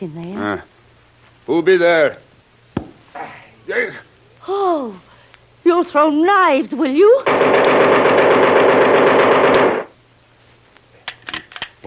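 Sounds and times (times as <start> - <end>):
speech: 0.0 - 0.8, 1.5 - 2.2, 3.2 - 8.4
rapid gunfire from a gun that jams: 7.2 - 9.9.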